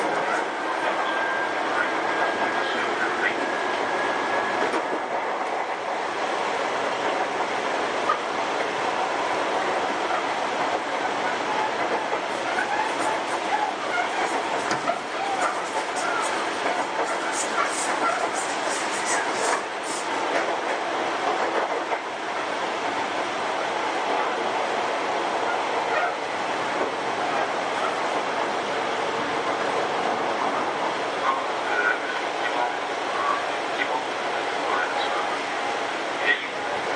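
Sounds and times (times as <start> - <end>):
faint voices: 0.0 - 4.7, 11.1 - 20.1, 27.2 - 36.9
Sotetsu 7000 series train squeals and clatter: 0.0 - 5.1, 9.9 - 20.6, 25.4 - 28.3, 30.4 - 34.0
Sotetsu 7000 series train interior rumble and rattle between Yokohama and Yamato: 0.0 - 36.9.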